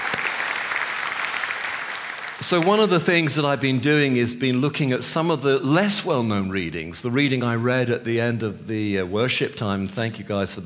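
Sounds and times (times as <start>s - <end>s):
applause: 0.0s - 3.8s
speech: 2.4s - 10.6s.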